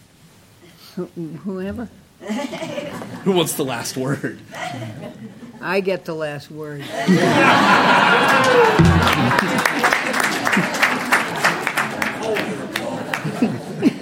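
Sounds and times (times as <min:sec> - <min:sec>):
speech: 0:01.0 - 0:10.0
laughter: 0:02.2 - 0:05.6, 0:06.8 - 0:14.0
audience applause: 0:07.3 - 0:13.6.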